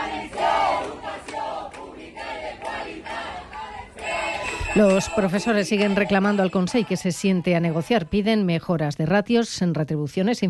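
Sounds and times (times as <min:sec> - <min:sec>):
crowd of teachers chanting protest slogans: 0:00.0 - 0:08.4
speech: 0:04.7 - 0:10.4.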